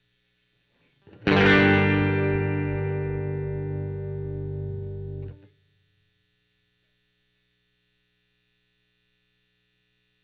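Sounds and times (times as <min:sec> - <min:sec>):
overdriven electric guitar: 0:01.1 - 0:05.5.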